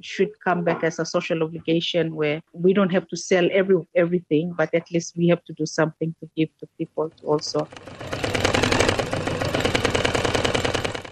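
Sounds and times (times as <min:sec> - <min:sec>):
speech: 0:00.0 - 0:08.2
sewing machine running: 0:07.5 - 0:11.1.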